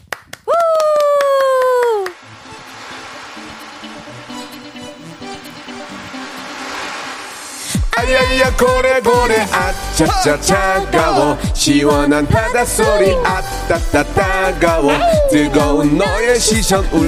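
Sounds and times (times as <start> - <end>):
people clapping: 0.0 - 2.2
speech: 8.0 - 17.0.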